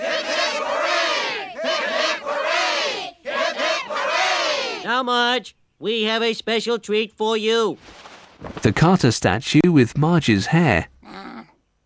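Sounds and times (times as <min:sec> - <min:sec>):
crowd cheering three cheers: 0:00.0 - 0:04.9
speech: 0:04.9 - 0:11.3.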